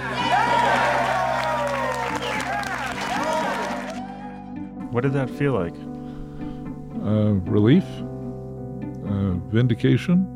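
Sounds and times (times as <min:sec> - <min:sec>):
crowd cheering at a victory speech: 0:00.0 - 0:04.6
clapping: 0:00.6 - 0:04.0
speech: 0:04.9 - 0:06.0, 0:07.1 - 0:08.1, 0:09.5 - 0:10.3.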